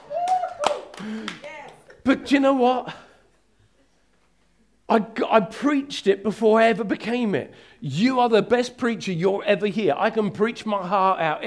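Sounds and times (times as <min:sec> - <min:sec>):
congregation clapping: 0:00.0 - 0:02.0
speech: 0:01.0 - 0:01.5, 0:02.1 - 0:03.0, 0:04.9 - 0:11.4.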